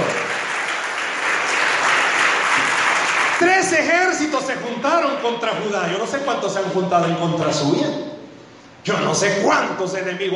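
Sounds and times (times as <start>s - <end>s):
audience applause: 0.0s - 3.7s
speech: 3.8s - 8.1s, 8.8s - 10.3s.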